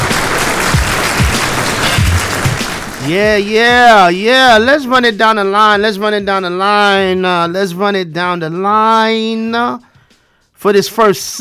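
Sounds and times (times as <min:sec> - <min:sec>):
audience applause at a live hip-hop showcase: 0:00.0 - 0:03.7
speech: 0:03.1 - 0:09.9, 0:10.6 - 0:11.4.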